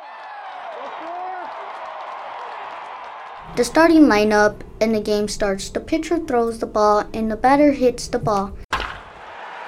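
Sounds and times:
baseball crowd cheering: 0.0s - 3.7s, 8.8s - 9.6s
speech: 3.5s - 8.6s.

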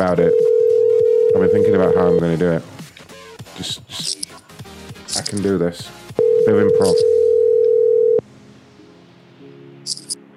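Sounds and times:
speech: 0.0s - 0.6s, 1.3s - 2.8s, 3.6s - 4.4s, 5.1s - 7.2s
telephone dial tone while placing a call: 0.0s - 2.2s, 6.2s - 8.2s.

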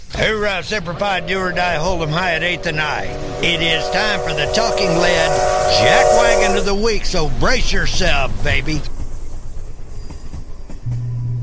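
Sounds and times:
train sound effect: 0.0s - 8.6s
speech: 0.2s - 9.0s.

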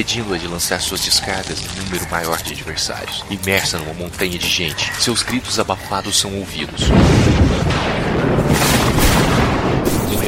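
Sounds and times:
speech: 0.0s - 8.8s
thunderclap from a lightning strike: 6.7s - 10.2s.

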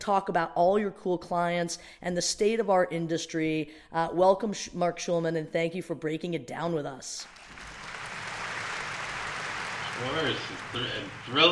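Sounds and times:
speech: 0.0s - 7.4s, 10.0s - 11.4s
crowd applause track: 7.2s - 11.4s.

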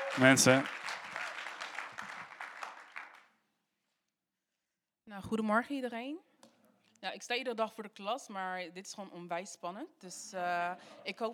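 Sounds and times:
audience applause: 0.0s - 3.3s
speech: 0.2s - 0.9s, 5.2s - 6.3s, 7.0s - 11.3s.

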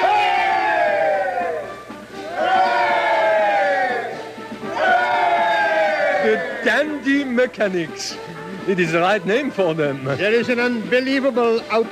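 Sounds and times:
crowd giving three cheers: 0.0s - 7.4s
speech: 6.3s - 11.9s.

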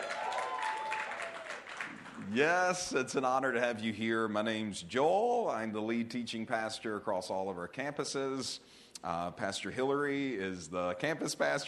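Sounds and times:
church congregation applauding its guests at a Word of Life Fondren service: 0.0s - 2.6s
speech: 2.3s - 11.6s.

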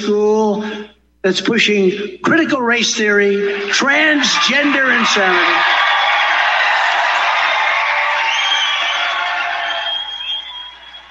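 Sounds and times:
speech: 0.0s - 5.9s
rally crowd cheering: 3.3s - 11.0s
crowd whistles: 7.5s - 11.0s.

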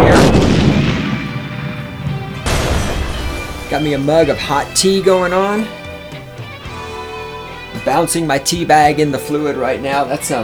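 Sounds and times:
cruise missile launch roar in a video game: 0.0s - 6.4s
speech: 3.7s - 5.8s, 8.0s - 10.4s.

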